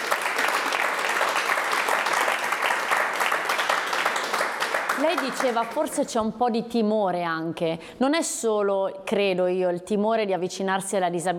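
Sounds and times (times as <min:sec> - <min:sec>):
audience applause: 0:00.0 - 0:06.0
speech: 0:05.0 - 0:11.3.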